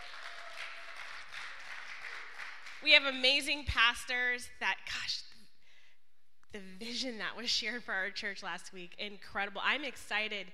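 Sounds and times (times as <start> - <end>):
audience applause: 0.0 - 2.8
speech: 2.8 - 5.3, 6.5 - 10.5.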